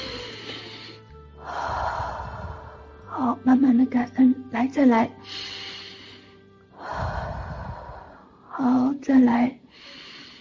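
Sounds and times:
deep breathing during a guided breathing exercise: 0.0s - 3.1s, 5.2s - 8.5s, 9.7s - 10.3s
speech: 3.2s - 5.6s, 8.6s - 9.6s.

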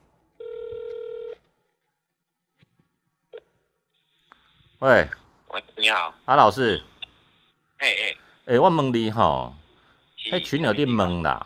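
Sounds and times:
telephone dialing and ringing: 0.4s - 1.4s
speech: 4.8s - 5.2s, 5.8s - 6.9s, 7.8s - 9.6s, 10.3s - 11.4s.

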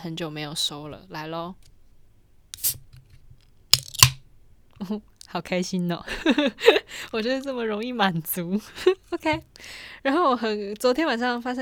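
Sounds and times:
speech: 0.0s - 1.7s, 4.8s - 11.5s
beer can opening: 2.6s - 4.2s.

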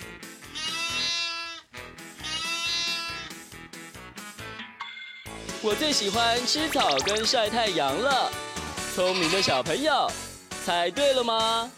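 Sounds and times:
sheep bleating: 0.5s - 3.4s, 8.9s - 9.7s
speech: 5.6s - 8.4s, 9.0s - 11.7s.

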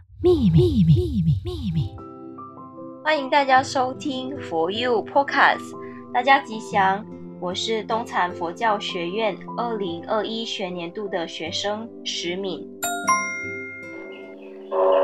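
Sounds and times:
speech: 0.2s - 2.1s, 3.1s - 13.3s
temple wake-up alarm bell tones: 12.8s - 14.9s.

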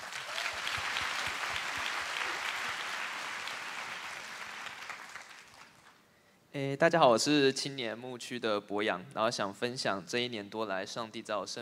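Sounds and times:
applause: 0.0s - 6.0s
speech: 6.6s - 11.6s.

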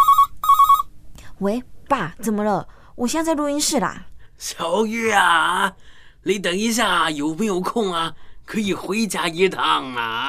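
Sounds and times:
phone ringtone: 0.0s - 0.9s
speech: 1.4s - 10.2s.

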